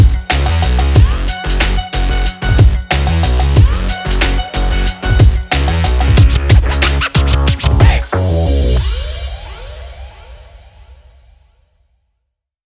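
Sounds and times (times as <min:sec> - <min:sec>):
energetic racing breakbeat music: 0:00.0 - 0:10.0.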